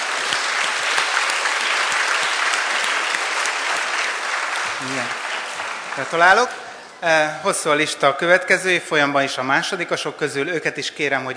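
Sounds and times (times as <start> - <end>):
audience applause for schoolchildren called up by name and school: 0.0 - 6.8
speech: 4.8 - 5.2, 6.0 - 11.3.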